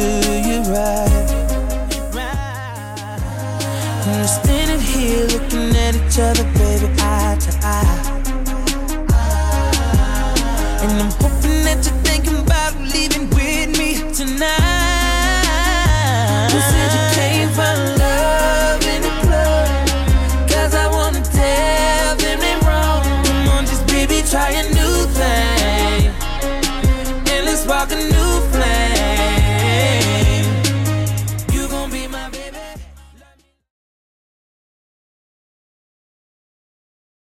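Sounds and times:
RnB beat: 0.0s - 33.5s.

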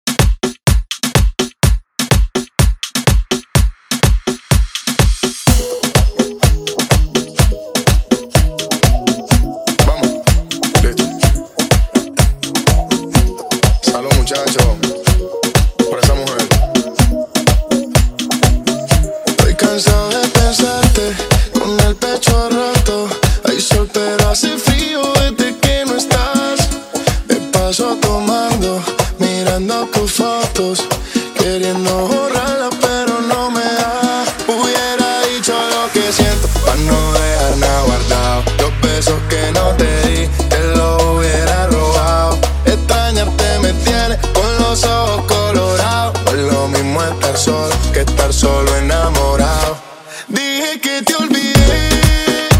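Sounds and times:
Top 40 pop music: 0.1s - 52.5s.

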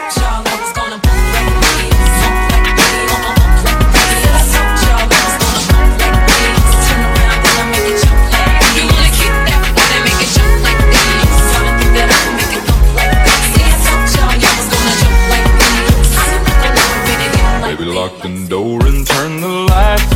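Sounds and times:
dirty country drum beat at 103 BPM: 0.2s - 17.6s, 18.8s - 20.1s.

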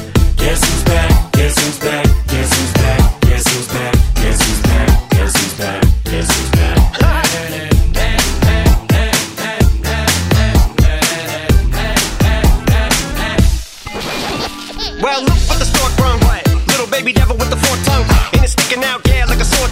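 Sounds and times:
hip hop music: 0.0s - 19.6s.

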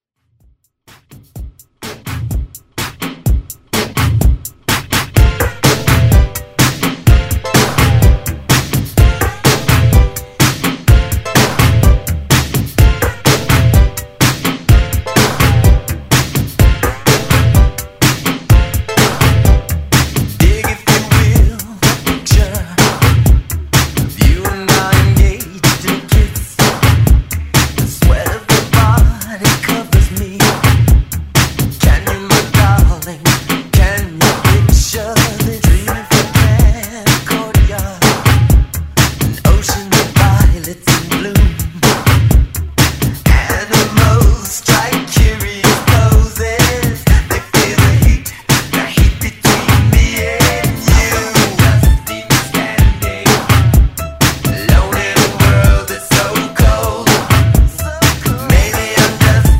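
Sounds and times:
1980s pop music: 1.8s - 59.5s.

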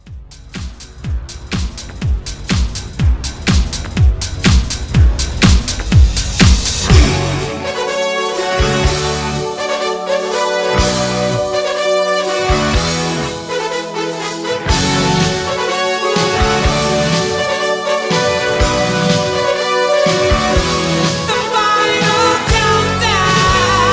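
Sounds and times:
80s rock house mixshow mix: 0.0s - 23.9s.

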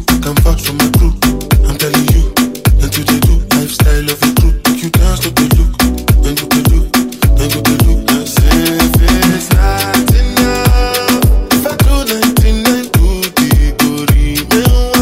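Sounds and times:
afro drum beat: 0.0s - 15.0s.

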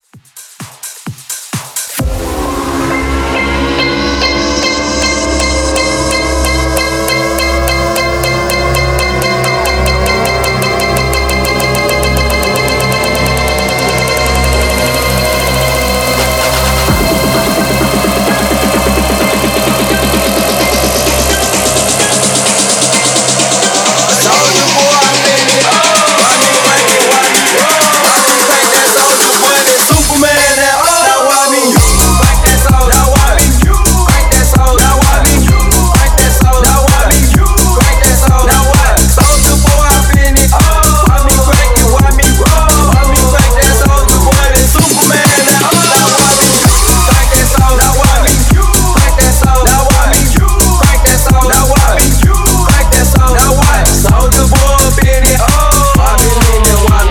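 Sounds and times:
club house music: 0.0s - 57.1s.

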